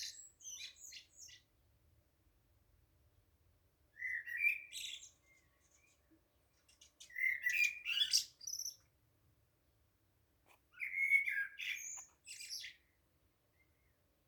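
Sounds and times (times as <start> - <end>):
birds chirping: 4.0 - 8.9, 10.7 - 14.0.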